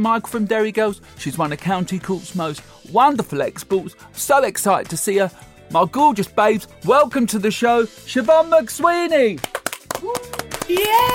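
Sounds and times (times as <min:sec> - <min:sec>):
speech: 0:00.0 - 0:11.1
hand claps: 0:09.4 - 0:11.1
person cheering: 0:09.9 - 0:11.1.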